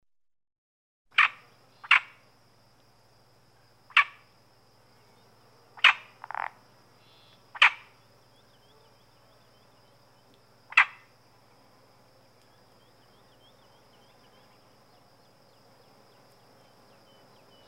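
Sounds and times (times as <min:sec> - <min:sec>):
Iberian marsh frog giving short rasping croaks: 0:01.1 - 0:02.2, 0:03.9 - 0:04.2, 0:05.8 - 0:08.0, 0:10.7 - 0:11.1.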